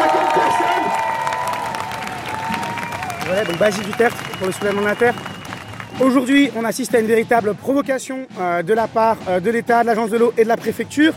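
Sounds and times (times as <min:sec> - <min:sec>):
crowd applause: 0:00.0 - 0:06.6
speech: 0:03.4 - 0:05.3, 0:06.0 - 0:11.1
faint tonal whistles: 0:03.4 - 0:06.5.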